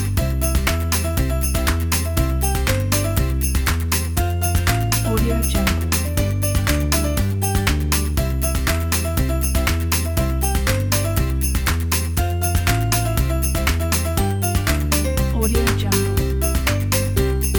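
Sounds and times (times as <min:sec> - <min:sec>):
happy Christmas song: 0:00.1 - 0:17.5.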